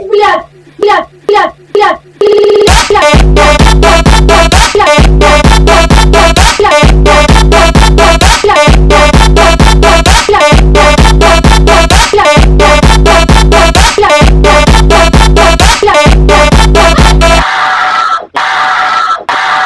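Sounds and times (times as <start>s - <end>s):
slowed phonk music: 0.2s - 19.6s.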